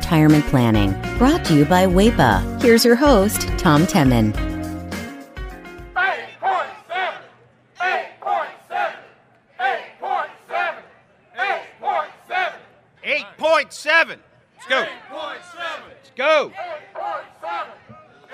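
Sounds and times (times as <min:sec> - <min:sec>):
speech: 0:00.1 - 0:04.5
crowd chanting at a union rally near the Capitol: 0:05.9 - 0:18.3.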